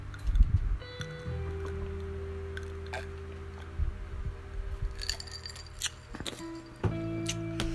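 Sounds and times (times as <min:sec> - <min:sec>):
steady low hum: 0:00.0 - 0:07.7
ice cubes clinking against a glass: 0:05.0 - 0:06.6.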